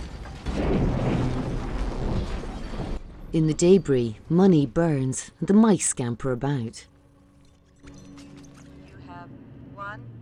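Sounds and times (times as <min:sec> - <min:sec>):
explosion ripping through a drug lab: 0:00.0 - 0:03.8
speech: 0:03.3 - 0:06.9.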